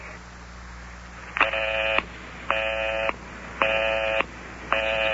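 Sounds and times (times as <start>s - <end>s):
telephone busy signal after redialing: 1.4s - 5.1s.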